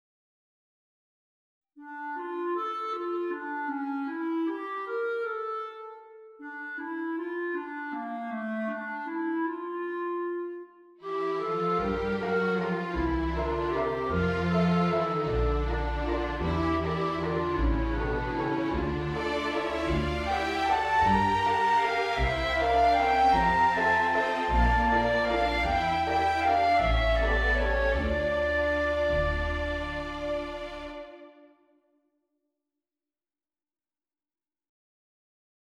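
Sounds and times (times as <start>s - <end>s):
clarinet: 1.8s - 31.7s.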